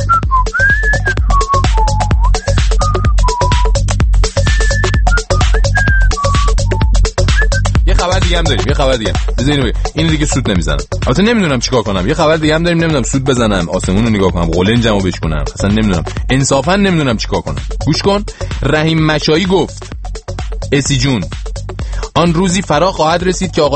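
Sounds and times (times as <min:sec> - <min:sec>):
person whistling a high melody: 0:00.0 - 0:07.8
music with steady thumping beat: 0:00.0 - 0:23.7
speech: 0:08.9 - 0:19.9, 0:20.7 - 0:21.4, 0:22.2 - 0:23.7.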